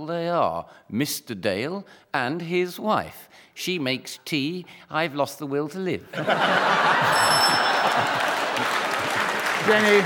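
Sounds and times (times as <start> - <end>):
speech: 0.0 - 8.8, 9.6 - 10.0
laughter: 6.1 - 10.0
game show buzzer: 7.0 - 8.9.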